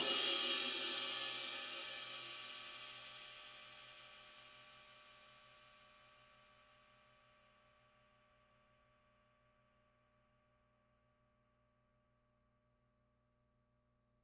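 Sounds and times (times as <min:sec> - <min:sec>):
close jazz ride cymbal: 0:00.0 - 0:06.0.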